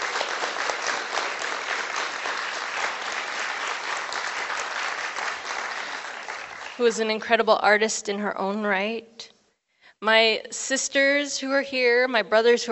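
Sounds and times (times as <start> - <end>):
audience applause: 0.0 - 7.1
speech: 6.8 - 9.3, 10.0 - 12.6.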